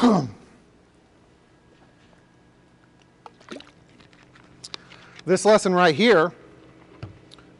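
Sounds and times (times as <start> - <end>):
person coughing: 0.0 - 0.4
speech: 0.0 - 0.4, 5.3 - 6.4.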